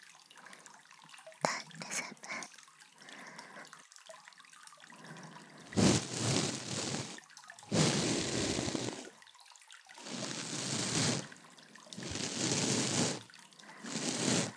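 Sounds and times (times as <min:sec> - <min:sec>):
ear cleaning after a bath recorded with a binaural microphone: 0:05.8 - 0:09.1, 0:10.0 - 0:11.3, 0:12.0 - 0:13.2, 0:13.8 - 0:14.5.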